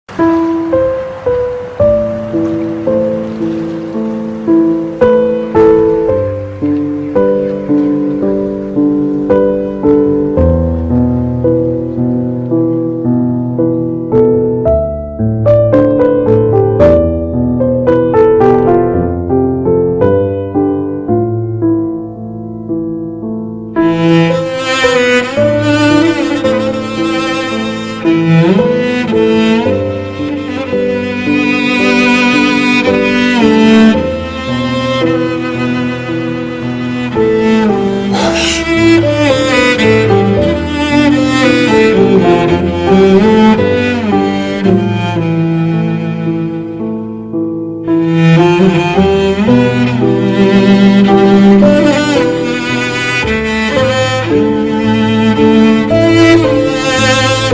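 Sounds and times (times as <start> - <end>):
emotional music: 0.0 - 57.5.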